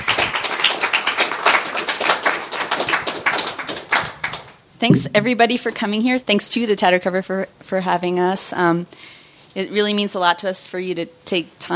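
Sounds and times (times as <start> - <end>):
audience applause: 0.0 - 4.5
speech: 4.8 - 11.7.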